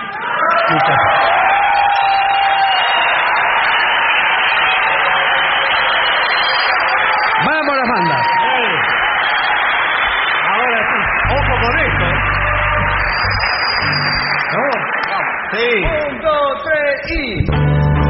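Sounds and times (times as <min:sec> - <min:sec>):
voices shouting and whooping: 0:00.0 - 0:04.0, 0:04.6 - 0:15.1
large audience cheering and applauding: 0:00.0 - 0:17.4.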